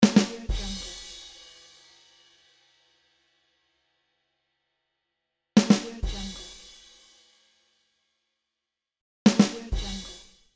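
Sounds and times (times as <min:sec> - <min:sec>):
drum rimshot with cymbal: 0:00.0 - 0:02.5, 0:05.6 - 0:07.2, 0:09.3 - 0:10.4.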